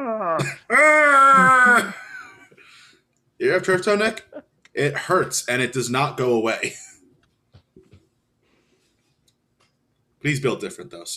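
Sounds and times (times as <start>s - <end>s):
voice imitating a screaming injured player: 0.0s - 2.0s
speech: 3.5s - 6.8s, 10.2s - 11.1s.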